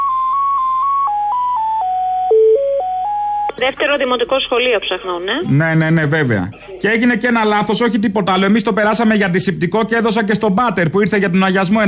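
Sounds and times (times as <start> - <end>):
telephone hold tone beeps during a call to a primary school in Psachna, Greece: 0.0 - 3.6
speech: 3.6 - 11.8.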